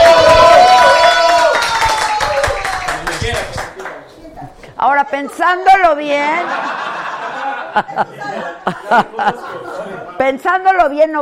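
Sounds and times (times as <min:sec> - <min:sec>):
voices cheering and whooping: 0:00.0 - 0:03.0
crowd applause: 0:00.0 - 0:04.1
speech: 0:05.1 - 0:06.9, 0:07.7 - 0:11.1
laughter: 0:05.1 - 0:10.2.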